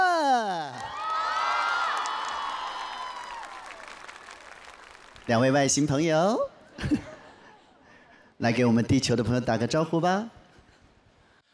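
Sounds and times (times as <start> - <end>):
audience applause: 0.7 - 5.6
speech: 5.3 - 7.1, 8.4 - 10.4.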